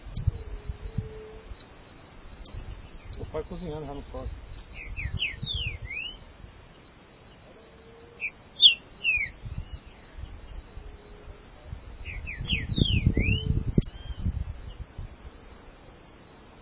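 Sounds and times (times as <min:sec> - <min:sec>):
speech: 0:03.3 - 0:04.4
green-winged saltator whistling: 0:04.8 - 0:06.2, 0:08.2 - 0:09.4, 0:12.1 - 0:14.1.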